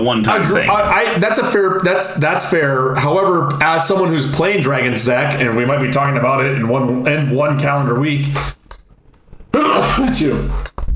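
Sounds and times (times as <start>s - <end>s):
speech: 0.0s - 8.6s, 9.5s - 10.7s
person sneezing into elbow: 9.6s - 10.6s.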